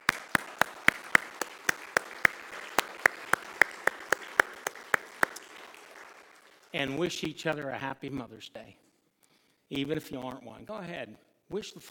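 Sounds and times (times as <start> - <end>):
audience round of applause: 0.0 - 7.0
speech: 6.7 - 8.9, 9.7 - 11.8.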